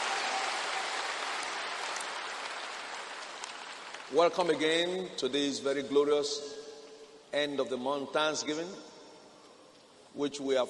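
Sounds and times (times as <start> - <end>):
church congregation applauding: 0.0 - 4.6
speech: 4.1 - 6.6, 7.3 - 8.9, 10.1 - 10.6.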